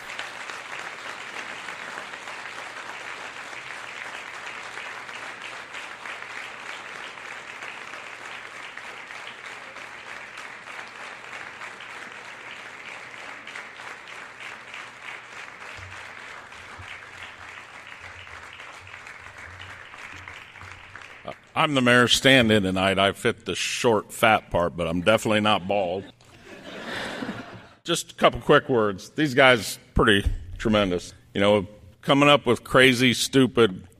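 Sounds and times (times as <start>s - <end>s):
audience applause: 0.0s - 21.7s
speech: 21.6s - 26.1s, 27.9s - 33.9s
laughter: 24.8s - 27.8s.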